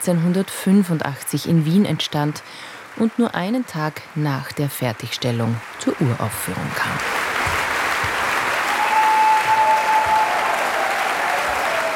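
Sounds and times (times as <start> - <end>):
speech: 0.0 - 7.2
concert audience applause demanding encore: 5.7 - 11.9.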